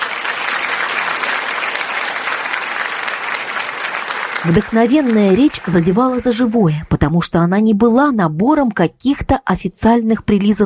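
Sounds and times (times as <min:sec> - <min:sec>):
audience applause in a hall: 0:00.0 - 0:06.7
speech: 0:04.4 - 0:10.6.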